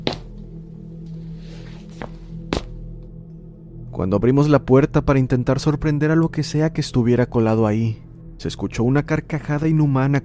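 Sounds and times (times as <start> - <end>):
footsteps on a roof: 0.0 - 0.4, 1.6 - 2.8
speech: 4.0 - 10.2.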